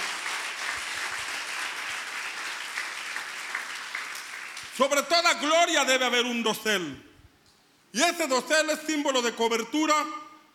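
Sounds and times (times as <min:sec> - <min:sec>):
audience applause: 0:00.0 - 0:04.7
speech: 0:04.8 - 0:07.1, 0:07.9 - 0:10.2.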